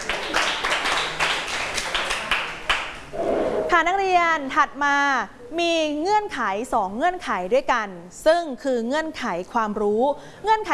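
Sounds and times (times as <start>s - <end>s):
students clapping for classmate: 0.0s - 3.0s
speech: 3.8s - 10.7s.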